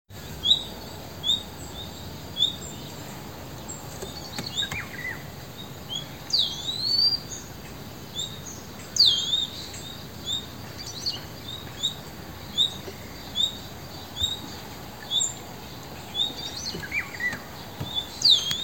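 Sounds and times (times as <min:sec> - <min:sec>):
Luscinia megarhynchos singing: 0:00.2 - 0:18.6.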